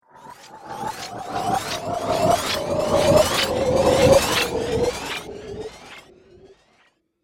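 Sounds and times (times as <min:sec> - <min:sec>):
sci-fi reversed laser with delay: 0:00.2 - 0:06.8.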